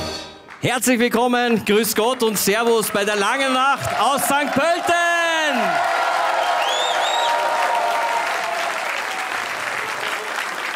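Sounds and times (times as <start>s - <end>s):
speech: 0.6s - 6.0s
audience applauding in festival tent: 2.0s - 10.7s
whistles: 6.4s - 7.4s.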